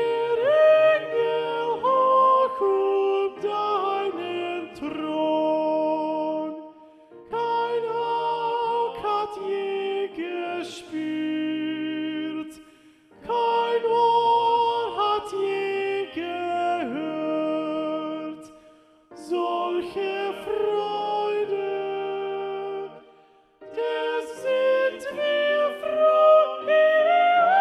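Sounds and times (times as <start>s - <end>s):
SATB choir with predominant soprano: 0.0s - 12.6s, 13.2s - 18.6s, 19.2s - 27.6s.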